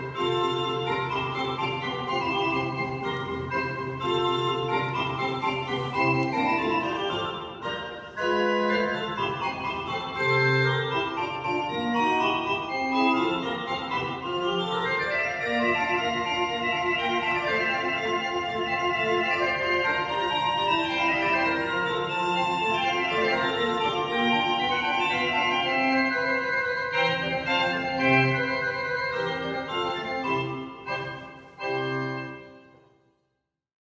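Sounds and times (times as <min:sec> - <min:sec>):
processional organ playing in a basilica: 0:00.0 - 0:33.0.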